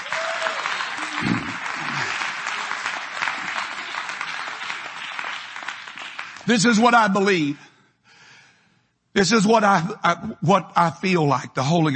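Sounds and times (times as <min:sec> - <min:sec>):
people clapping hands: 0:00.0 - 0:07.2
speech: 0:06.5 - 0:07.7, 0:09.2 - 0:11.9.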